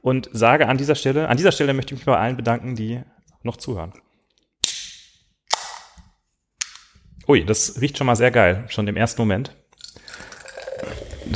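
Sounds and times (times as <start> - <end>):
speech: 0.0 - 4.0, 7.3 - 9.6
beer bottle cap pops: 4.6 - 6.0
beer fizzing: 9.8 - 11.3.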